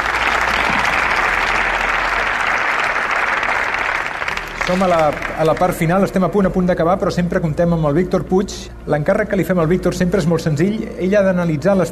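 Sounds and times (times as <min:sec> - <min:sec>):
audience applause: 0:00.0 - 0:06.2
speech: 0:04.7 - 0:11.9.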